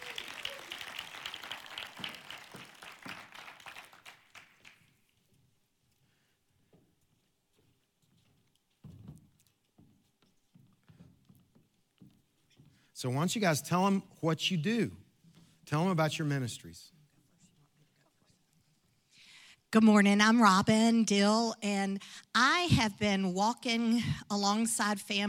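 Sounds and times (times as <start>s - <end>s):
audience applause welcoming speakers to the stage: 0.0s - 4.9s
faint taps and rustles: 5.3s - 12.9s
speech: 13.0s - 15.0s, 15.7s - 17.0s, 19.8s - 25.2s.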